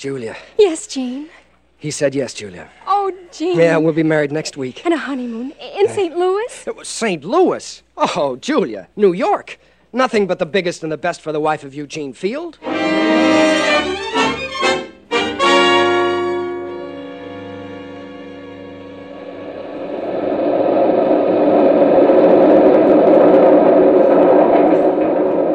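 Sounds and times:
speech: 0.0s - 13.1s
new elevated railway train passing in New York: 12.6s - 25.5s.

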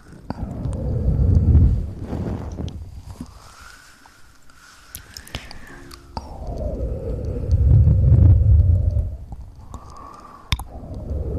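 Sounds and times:
gurgling mouth sounds: 0.0s - 3.3s, 6.2s - 11.3s
small clicks and pops: 0.0s - 3.4s, 4.0s - 11.3s.

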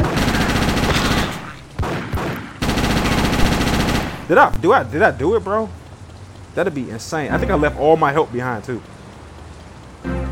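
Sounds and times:
video game submachine gun automatic fire: 0.0s - 4.6s
speech: 4.3s - 5.8s, 6.6s - 9.0s.

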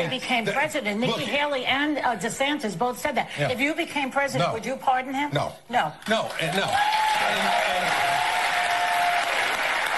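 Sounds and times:
speech: 0.0s - 8.1s
audience applause: 6.4s - 9.9s.

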